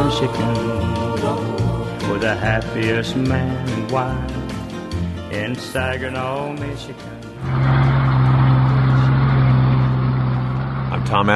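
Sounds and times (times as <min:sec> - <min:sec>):
big truck engine droning on ice road: 0:00.0 - 0:11.3
speech: 0:00.1 - 0:04.4, 0:05.3 - 0:07.8, 0:11.1 - 0:11.3
road noise: 0:06.2 - 0:11.3.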